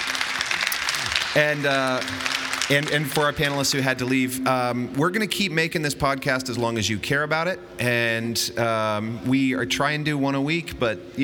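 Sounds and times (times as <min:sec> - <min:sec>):
audience applause for the panel: 0:00.0 - 0:04.2
speech: 0:01.3 - 0:11.2.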